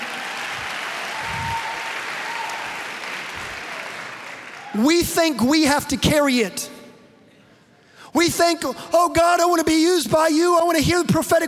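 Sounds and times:
audience applause: 0:00.0 - 0:04.8
speech: 0:04.8 - 0:06.7, 0:08.2 - 0:11.4.

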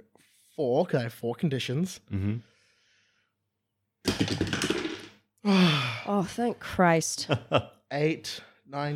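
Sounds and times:
speech: 0:00.6 - 0:02.5, 0:04.0 - 0:04.6, 0:05.4 - 0:08.9
metal dice clattering across a table: 0:04.1 - 0:05.1.

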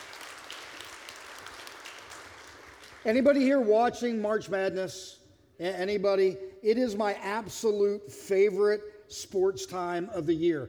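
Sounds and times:
audience applause: 0:00.0 - 0:03.0
speech: 0:03.0 - 0:10.6.

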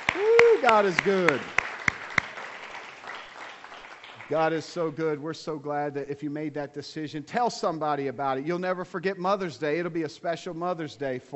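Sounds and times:
audience clapping hands: 0:00.0 - 0:04.9
speech: 0:00.6 - 0:01.6, 0:04.3 - 0:11.3.

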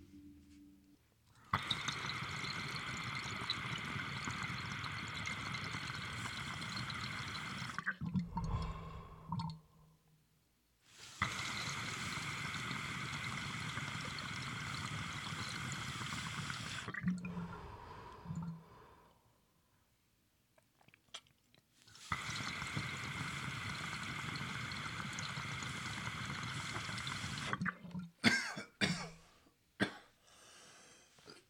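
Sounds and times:
water bubbling in a dab rig: 0:01.6 - 0:09.7, 0:11.2 - 0:17.4, 0:22.1 - 0:28.1
person breathing: 0:08.2 - 0:09.9, 0:17.3 - 0:19.5, 0:30.2 - 0:31.4.

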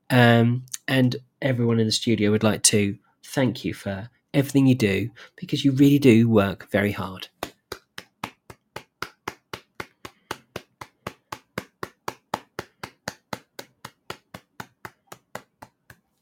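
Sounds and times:
speech: 0:00.1 - 0:07.3
clapping: 0:07.4 - 0:15.8.

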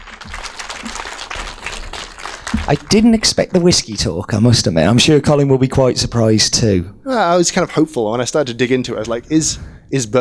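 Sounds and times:
crowd audience applause: 0:00.0 - 0:03.4
speech: 0:02.7 - 0:10.1.

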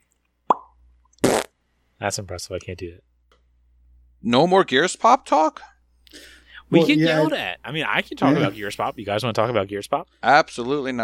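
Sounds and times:
popping sound made with mouth: 0:00.5 - 0:01.5
speech: 0:02.0 - 0:03.1, 0:04.2 - 0:11.0.

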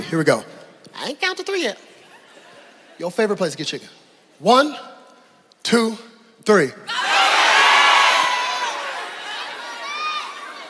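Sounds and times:
speech: 0:00.1 - 0:01.9, 0:03.0 - 0:04.9, 0:05.7 - 0:07.0
crowd shouting different answers all at once: 0:06.9 - 0:10.6.

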